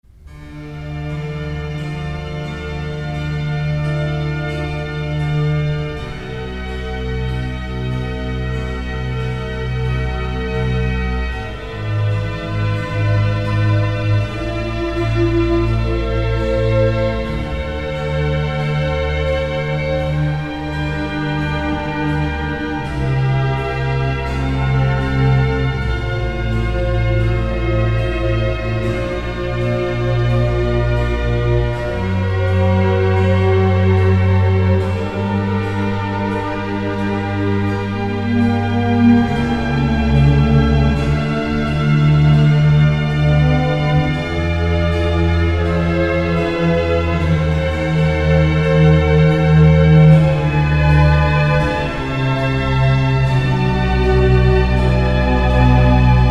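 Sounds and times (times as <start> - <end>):
concerto adagio movement: 0.0 - 56.3.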